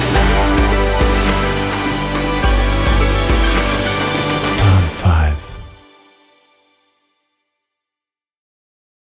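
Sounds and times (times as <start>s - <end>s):
inspiring cinematic pop music: 0.0s - 6.7s.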